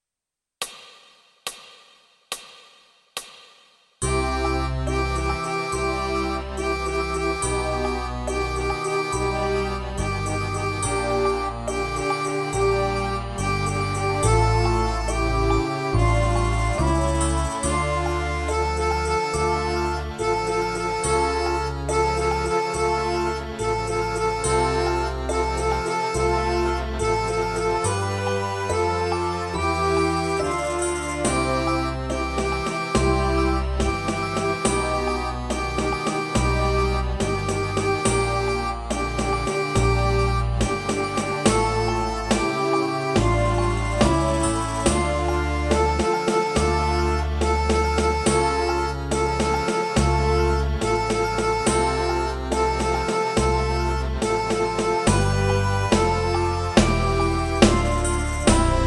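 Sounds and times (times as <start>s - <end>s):
accordion playing tutti: 4.0s - 58.8s.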